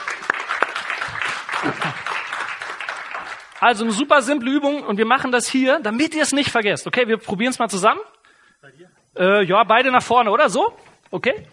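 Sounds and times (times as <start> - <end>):
audience applause: 0.0 - 4.0
speech: 1.6 - 2.1, 3.6 - 11.5.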